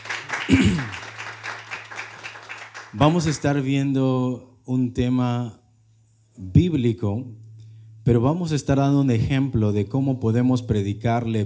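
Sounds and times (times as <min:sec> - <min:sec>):
audience clapping: 0:00.0 - 0:03.6
speech: 0:00.5 - 0:01.0, 0:03.0 - 0:05.6, 0:06.4 - 0:07.4, 0:08.0 - 0:11.4.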